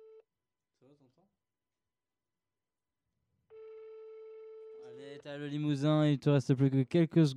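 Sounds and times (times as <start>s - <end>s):
telephone ringback tone while calling: 0.0s - 0.2s, 3.5s - 5.0s
speech: 1.0s - 1.5s, 4.9s - 7.3s.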